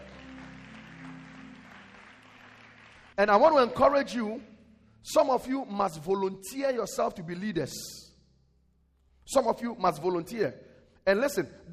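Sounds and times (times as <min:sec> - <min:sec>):
audience clapping: 0:00.0 - 0:04.3
speech: 0:03.2 - 0:08.0, 0:09.3 - 0:11.7.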